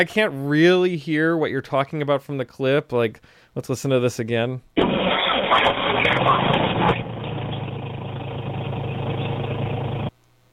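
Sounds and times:
speech: 0.0s - 6.2s
car engine starting with a slight screech: 4.8s - 10.1s.

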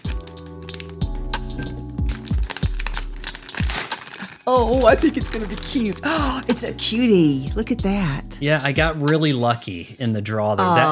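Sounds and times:
plastic packaging crinkling as a package is opened with a pocket knife: 0.0s - 6.6s
speech: 4.5s - 10.9s.

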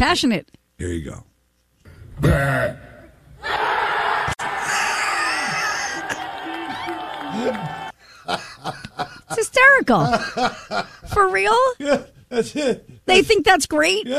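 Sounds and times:
speech: 0.0s - 1.3s, 2.2s - 2.9s, 7.3s - 14.1s
loud short burp: 2.2s - 3.1s
crowd cheering: 3.4s - 8.0s
laughter: 4.4s - 11.2s.

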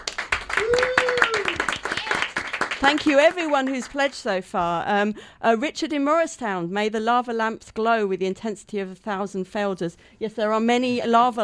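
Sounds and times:
group of people clapping in a room full of lava lamps: 0.0s - 4.3s
speech: 2.8s - 11.4s.

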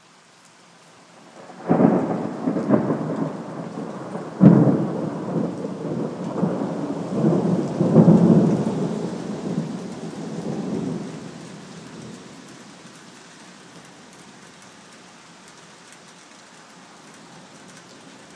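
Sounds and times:
storm on a Sunday afternoon: 1.2s - 12.6s.

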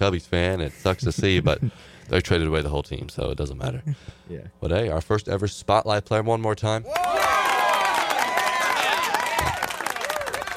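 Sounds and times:
speech: 0.0s - 7.2s
audience clapping and cheering: 6.9s - 10.5s.

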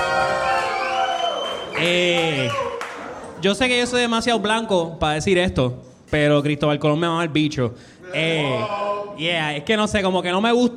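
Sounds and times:
audience applause: 0.0s - 3.2s
speech: 1.8s - 2.6s, 3.4s - 10.7s.

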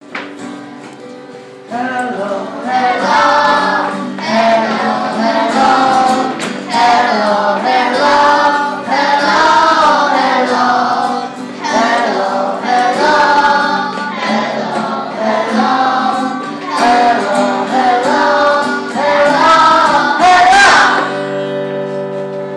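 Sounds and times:
hello song: 0.4s - 22.5s.

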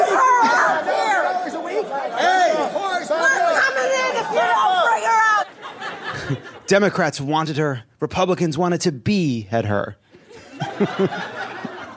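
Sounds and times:
crowd screaming outside the Capitol: 0.0s - 6.1s
laughter: 0.0s - 7.0s, 10.1s - 11.9s
speech: 6.3s - 10.1s, 10.7s - 11.4s.

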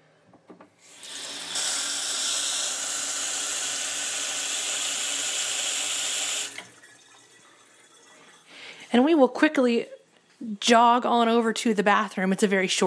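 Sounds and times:
water running from a kitchen sink tap: 0.8s - 9.1s
speech: 8.9s - 12.8s.

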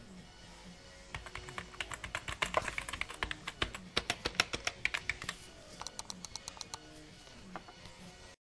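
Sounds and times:
office ambience: 1.1s - 7.8s.

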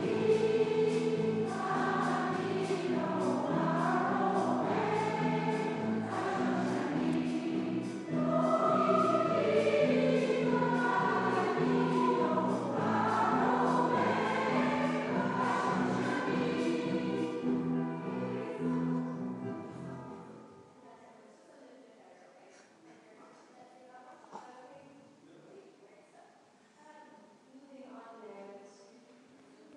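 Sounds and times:
vocal arts: 0.0s - 25.5s.

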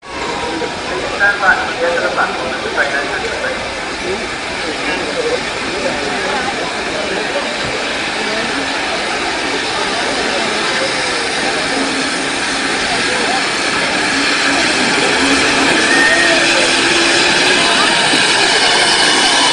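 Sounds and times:
Pickering railway station ambience: 0.0s - 19.5s.

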